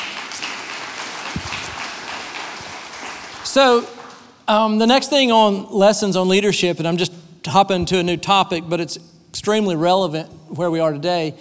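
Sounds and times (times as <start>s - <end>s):
audience clapping: 0.0s - 4.4s
speech: 3.6s - 11.4s.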